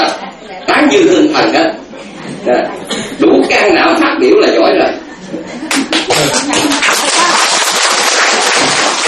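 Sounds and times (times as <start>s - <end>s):
speech: 0.1s - 1.8s, 2.4s - 6.8s
crowd applauding: 5.7s - 9.0s.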